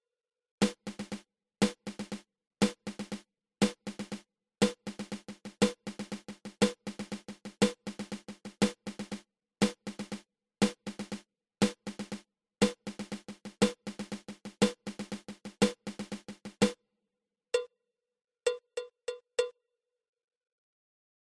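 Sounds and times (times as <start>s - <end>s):
single ratamacue drum rudiment: 0.6s - 16.8s.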